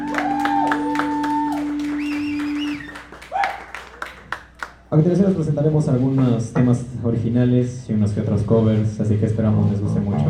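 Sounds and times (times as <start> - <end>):
rising cheers and whoops: 0.0 - 3.9
audience applause: 0.0 - 4.8
shrill whistles: 0.4 - 3.7
speech: 4.9 - 10.2.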